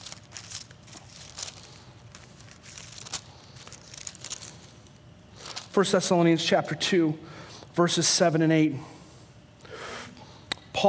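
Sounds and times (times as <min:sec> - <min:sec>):
Bible pages being turned: 0:00.0 - 0:05.9
speech: 0:05.8 - 0:09.0.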